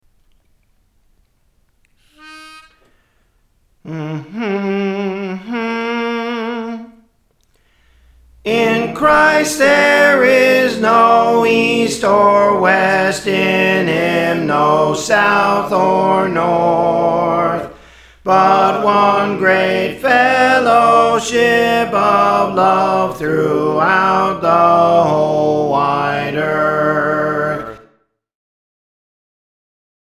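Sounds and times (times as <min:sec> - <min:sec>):
soprano singing: 0:03.9 - 0:07.2, 0:08.4 - 0:27.9.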